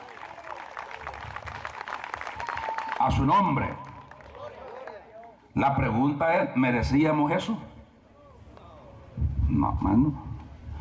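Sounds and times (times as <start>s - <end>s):
church congregation clapping in praise: 0.0s - 5.4s
speech: 3.0s - 3.9s, 5.6s - 7.7s, 9.8s - 10.3s.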